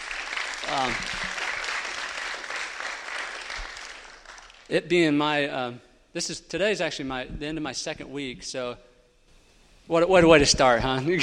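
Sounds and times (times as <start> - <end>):
audience round of applause: 0.0 - 4.7
speech: 0.7 - 1.4, 4.7 - 8.9, 9.9 - 11.2.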